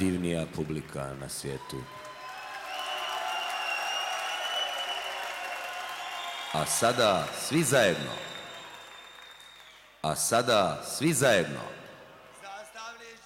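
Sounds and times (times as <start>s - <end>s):
speech: 0.0s - 2.1s, 6.5s - 8.3s, 10.0s - 11.8s
concert audience applause: 0.0s - 9.9s.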